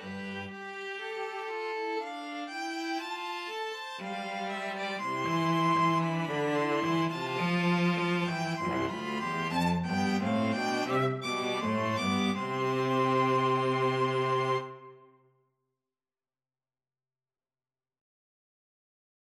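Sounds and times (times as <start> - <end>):
string trio playing symphonic music: 0.0 - 14.9.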